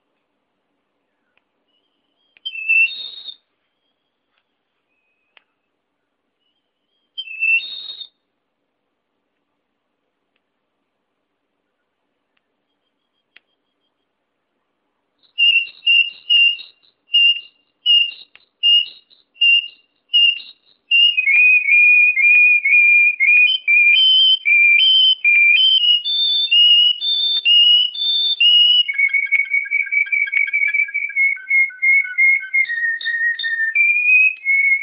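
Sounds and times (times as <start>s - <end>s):
blackbird singing: 1.0s - 8.1s, 15.2s - 34.8s.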